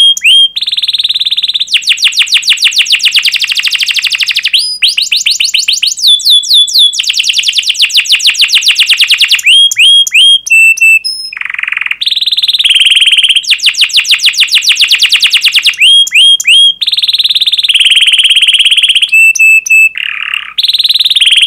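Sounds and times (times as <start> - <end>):
canary singing fast trills: 0.0 - 21.4.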